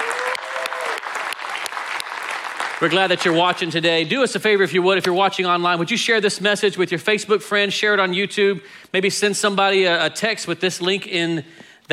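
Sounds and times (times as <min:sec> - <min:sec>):
audience round of applause: 0:00.0 - 0:03.8
speech: 0:02.8 - 0:11.9.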